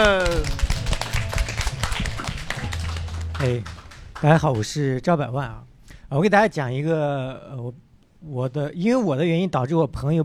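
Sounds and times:
audience applause: 0.0s - 4.8s
speech: 3.4s - 10.2s.

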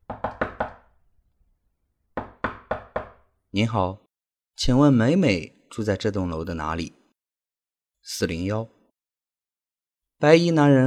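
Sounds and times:
knocking on a door: 0.0s - 0.9s, 2.2s - 3.2s
speech: 3.6s - 4.0s, 4.6s - 7.0s, 8.0s - 8.8s, 10.2s - 10.8s.

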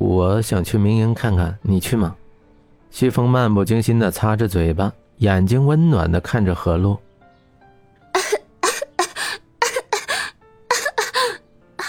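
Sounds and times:
speech: 0.2s - 2.2s, 2.9s - 7.0s
person coughing after choking on soy milk: 8.2s - 11.8s
wheezy gasps: 8.2s - 11.8s.

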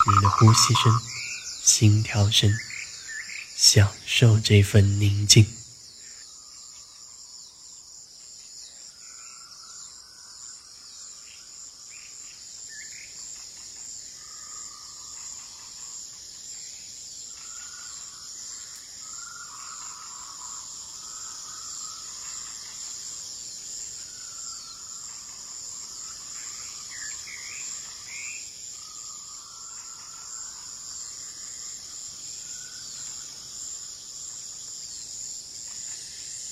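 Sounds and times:
birds calling: 0.0s - 5.6s
night insects chirping: 0.0s - 36.4s
speech: 0.3s - 2.7s, 3.6s - 5.6s.

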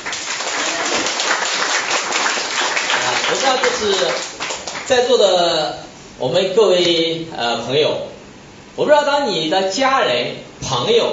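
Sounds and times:
audience applause: 0.0s - 5.0s
speech: 3.3s - 4.3s, 4.9s - 8.1s, 8.8s - 11.1s.

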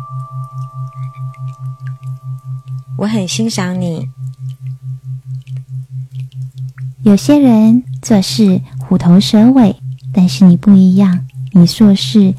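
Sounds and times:
speech: 0.0s - 4.2s, 7.0s - 12.3s
alpha wave binaural beat tone: 0.0s - 12.3s
faint high hum: 0.0s - 12.3s.

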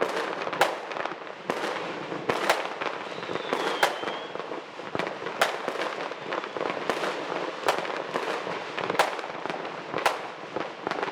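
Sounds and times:
fireworks and firecrackers: 0.0s - 11.1s
rising and falling whistling tone: 3.0s - 4.4s.

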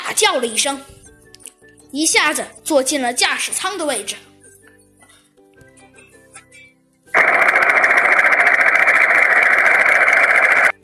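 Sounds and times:
speech: 0.1s - 1.0s, 1.9s - 4.3s
helicopter engine: 7.2s - 10.8s.

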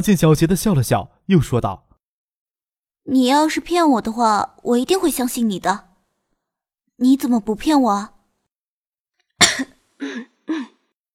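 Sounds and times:
speech: 0.0s - 1.8s, 3.1s - 5.9s, 7.0s - 8.1s, 9.6s - 10.7s
soft cough at a classroom door: 9.4s - 10.8s.

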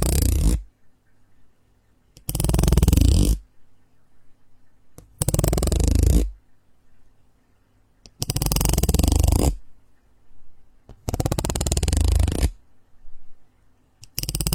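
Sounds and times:
rasping scratchy bursts of a strange material: 0.0s - 0.6s, 2.2s - 3.4s, 5.2s - 6.4s, 8.2s - 9.6s, 11.0s - 12.6s, 14.1s - 14.5s
faint low hum: 0.0s - 14.5s.

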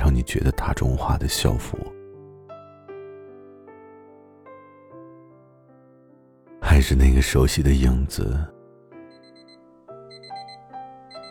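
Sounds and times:
speech: 0.2s - 1.9s, 6.7s - 8.6s
alarm clock ringing: 9.1s - 11.2s.

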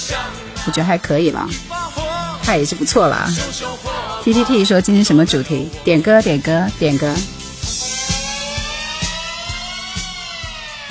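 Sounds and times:
speech: 0.1s - 1.8s, 2.5s - 7.4s
fire engine siren: 7.7s - 10.8s.

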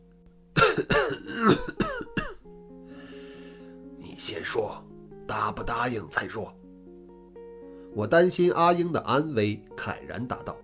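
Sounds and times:
rough throaty coughs: 0.6s - 2.4s
speech: 0.8s - 1.9s, 4.3s - 6.6s, 7.9s - 10.6s.

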